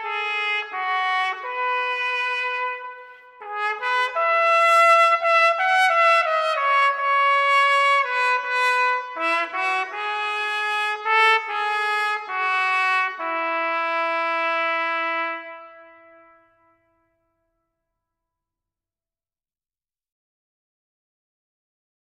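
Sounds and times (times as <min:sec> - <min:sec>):
trumpet playing a hymn: 0:00.0 - 0:16.8.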